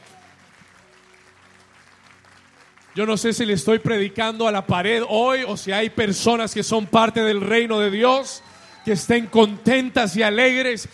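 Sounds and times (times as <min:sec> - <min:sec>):
crowd applause: 0:00.0 - 0:04.2, 0:07.9 - 0:10.7
speech: 0:03.0 - 0:10.9.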